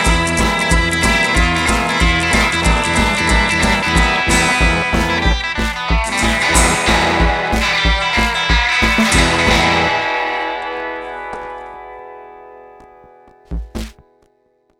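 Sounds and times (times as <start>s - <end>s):
music beat: 0.0s - 10.0s, 12.8s - 14.0s.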